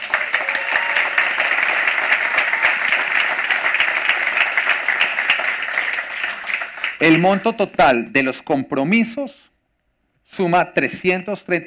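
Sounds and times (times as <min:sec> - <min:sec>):
audience applause at a church gathering: 0:00.0 - 0:07.5
speech: 0:07.0 - 0:09.5, 0:10.4 - 0:11.6.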